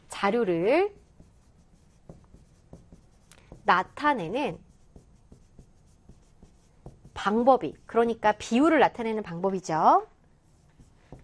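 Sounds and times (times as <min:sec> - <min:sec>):
speech: 0:00.2 - 0:01.0, 0:03.7 - 0:04.7, 0:07.2 - 0:10.1
handwriting pen strokes during a lesson on bar and pie graphs: 0:00.3 - 0:08.4, 0:10.4 - 0:11.2.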